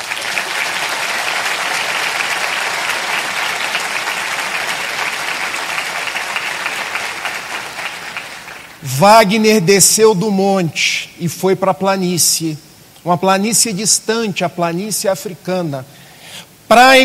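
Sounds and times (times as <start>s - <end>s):
audience applause: 0.0s - 8.8s
speech: 9.0s - 17.0s.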